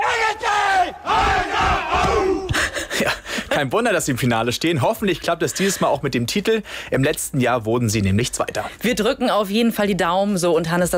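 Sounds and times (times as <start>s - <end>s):
team pre-game war cry group shouts: 0.0s - 2.5s
speech: 3.6s - 10.9s.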